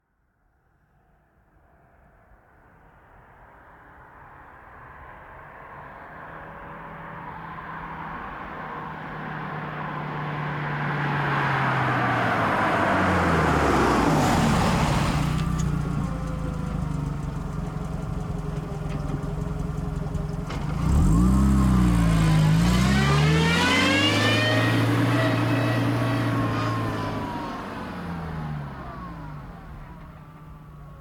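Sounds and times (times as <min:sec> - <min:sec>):
Volkswagen Golf V 1.6 FSI stopping, reversing and driving away: 0:09.4 - 0:31.0.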